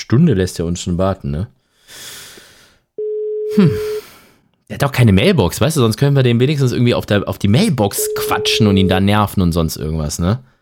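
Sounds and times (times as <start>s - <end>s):
speech: 0.1s - 2.2s, 3.6s - 4.0s, 4.7s - 10.5s
telephone ringing tone during a call: 3.0s - 4.0s, 7.9s - 9.0s
telephone line hiss: 8.1s - 8.9s.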